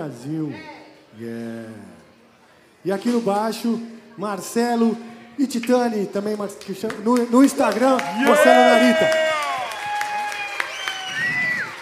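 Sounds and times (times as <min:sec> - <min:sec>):
speech: 0:00.0 - 0:02.0, 0:02.8 - 0:09.4
audience applause for a bassist: 0:07.4 - 0:11.8
high whistles or whoops: 0:08.1 - 0:11.8.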